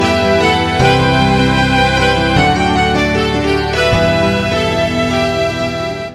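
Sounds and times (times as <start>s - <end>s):
outro music: 0.0s - 6.1s.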